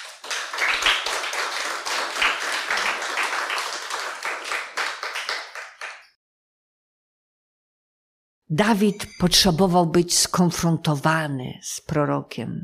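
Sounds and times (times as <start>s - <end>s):
audience applause: 0.0s - 6.1s
speech: 8.5s - 12.6s.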